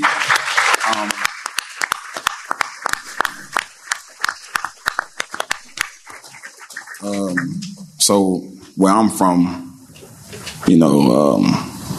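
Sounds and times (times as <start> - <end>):
audience applause: 0.0 - 7.5
speech: 7.0 - 9.6, 10.7 - 11.7.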